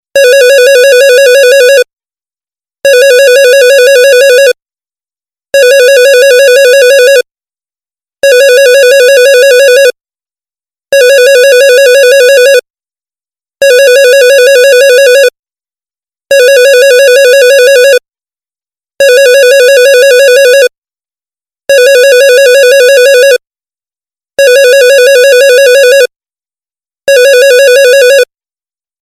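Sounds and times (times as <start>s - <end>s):
office phone ringing: 0.2s - 1.9s, 2.8s - 4.6s, 5.6s - 7.3s, 8.2s - 10.0s, 10.9s - 12.6s, 13.6s - 15.4s, 16.3s - 18.0s, 19.0s - 20.7s, 21.7s - 23.4s, 24.4s - 26.1s, 27.1s - 28.3s.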